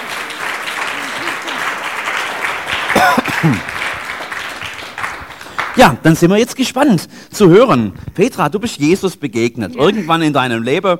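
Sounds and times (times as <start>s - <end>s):
brief cheer and voices: 0.0s - 1.9s
audience clapping: 0.0s - 6.8s
speech: 3.4s - 3.8s, 5.8s - 10.9s.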